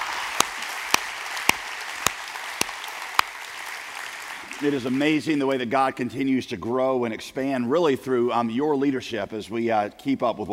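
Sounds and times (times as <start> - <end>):
church congregation clapping to welcome Alamance County into Summit Church: 0.0 - 5.6
speech: 4.6 - 10.5.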